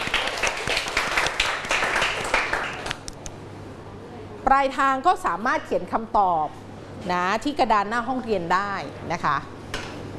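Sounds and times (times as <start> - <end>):
classroom group clapping: 0.0 - 3.3
speech: 4.5 - 9.6.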